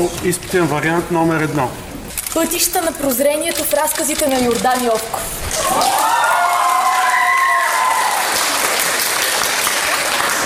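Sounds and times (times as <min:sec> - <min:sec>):
speech: 0:00.0 - 0:06.3
stormy applause from exam candidates: 0:05.5 - 0:10.4.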